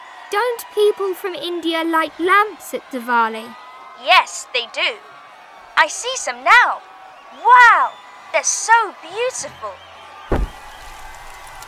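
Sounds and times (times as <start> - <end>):
speech: 0.3 - 5.2, 5.8 - 9.9
fireworks going off: 10.3 - 11.6.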